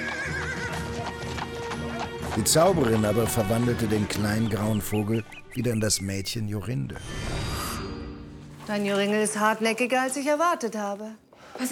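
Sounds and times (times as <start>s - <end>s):
horse whinnying: 0.0s - 2.0s
horses galloping away: 0.0s - 5.3s
speech: 2.4s - 7.5s, 8.7s - 11.7s.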